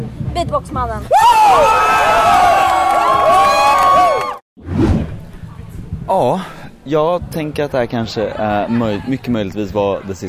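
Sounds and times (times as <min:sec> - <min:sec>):
speech: 0:00.4 - 0:02.5, 0:06.1 - 0:10.2
crowd cheering: 0:01.1 - 0:04.4.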